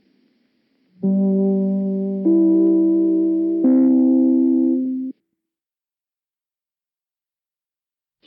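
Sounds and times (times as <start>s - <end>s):
three-note broadcast chime: 1.0s - 5.1s.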